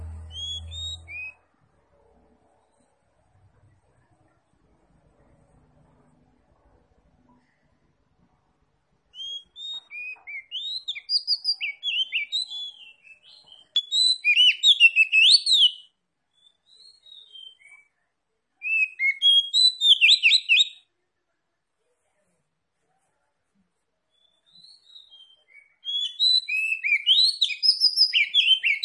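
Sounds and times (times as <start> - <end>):
Oriental magpie-robin song: 0.0 - 1.4, 9.1 - 17.9, 18.6 - 20.8, 24.1 - 28.8.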